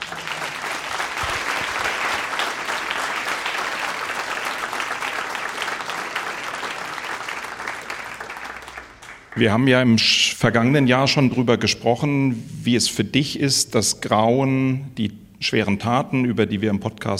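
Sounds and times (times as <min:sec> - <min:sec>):
audience applause: 0:00.0 - 0:09.5
speech: 0:09.4 - 0:17.1.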